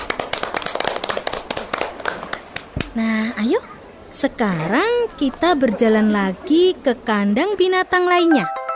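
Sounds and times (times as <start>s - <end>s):
kindergarten children clapping for a classmate on a zoo outing: 0.0s - 3.0s
speech: 3.0s - 8.6s.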